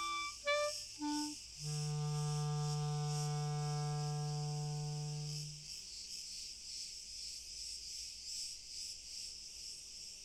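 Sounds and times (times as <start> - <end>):
crickets chirping: 0.0 - 10.2.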